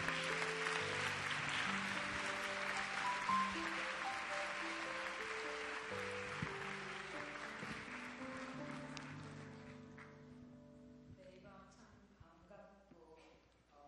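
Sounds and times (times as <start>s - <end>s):
audience applause: 0.0s - 9.8s
sustained low keyboard chords: 0.0s - 11.9s.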